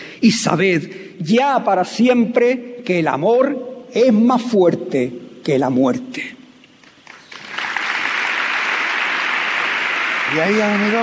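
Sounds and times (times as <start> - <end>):
speech: 0.2 - 6.4, 10.3 - 11.0
audience ovation applause: 7.0 - 11.0.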